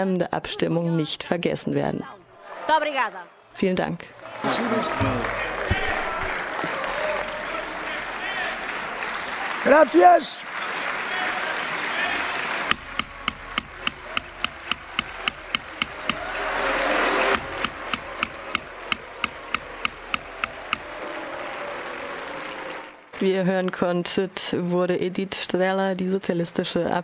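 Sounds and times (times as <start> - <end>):
speech: 0.0 - 5.8, 9.6 - 10.8, 23.2 - 27.0
parliament applause: 4.2 - 23.2
sharp knocks: 12.7 - 21.0.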